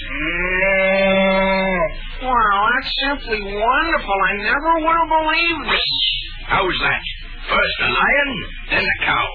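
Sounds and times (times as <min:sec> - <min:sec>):
cow mooing: 0:00.1 - 0:02.0
speech: 0:02.8 - 0:09.3.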